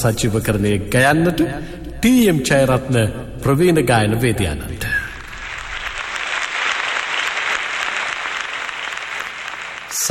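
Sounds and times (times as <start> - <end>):
speech: 0.0 - 4.9
audience applause at a live song concert: 5.2 - 10.1.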